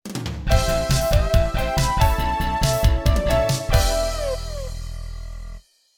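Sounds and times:
background music in TG-100 version: 0.2s - 4.9s.

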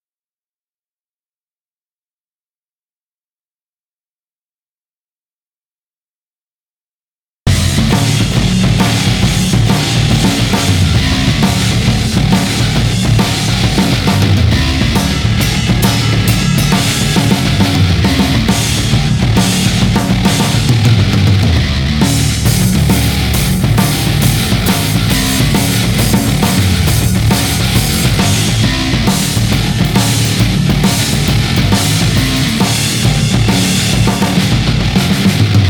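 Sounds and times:
136 BPM layer loop: 7.5s - 34.9s.

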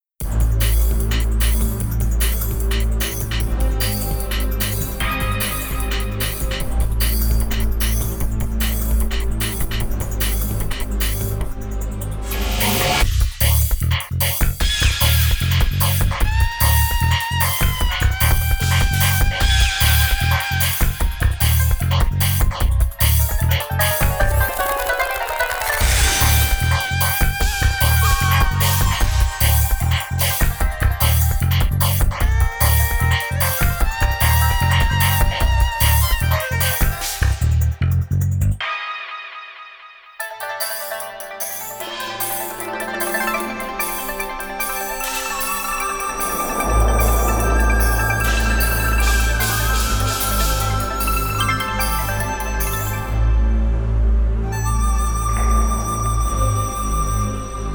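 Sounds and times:
Chinese style music: 0.0s - 57.7s.

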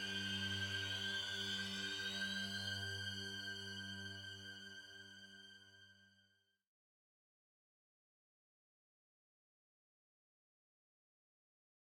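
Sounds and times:
slaughter music: 0.0s - 6.6s.

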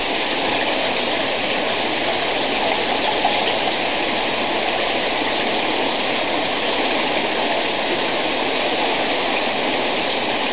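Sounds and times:
water torrent: 0.0s - 10.5s.

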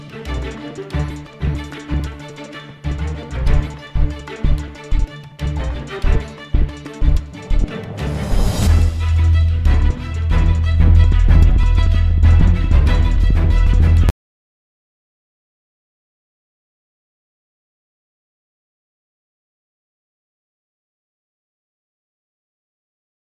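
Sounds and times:
ambience loop: 0.0s - 14.1s.

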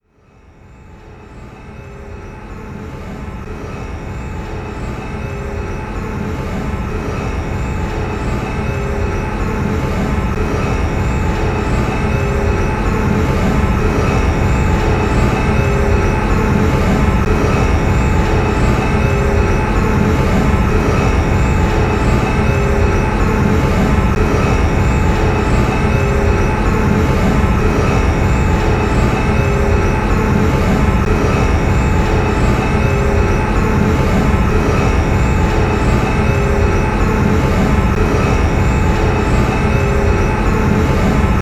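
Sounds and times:
machine starting and idling: 4.0s - 41.3s.

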